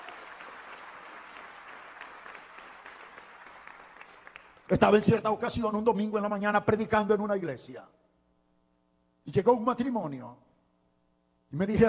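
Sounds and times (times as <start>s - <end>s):
audience applauding in praise: 0.0s - 4.9s
speech: 4.7s - 8.0s, 9.3s - 10.5s, 11.5s - 11.8s.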